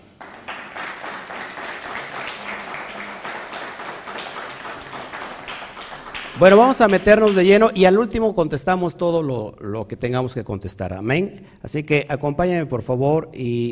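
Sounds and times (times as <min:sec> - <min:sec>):
audience applause: 0:00.0 - 0:07.6
speech: 0:06.4 - 0:13.7.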